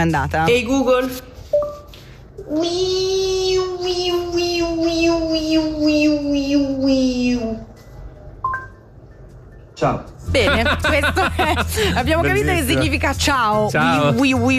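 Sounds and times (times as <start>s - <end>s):
speech: 0.0s - 1.3s, 2.4s - 7.6s, 9.8s - 14.5s
person imitating a Japanese cicada: 2.4s - 7.7s
laughter: 10.3s - 12.5s.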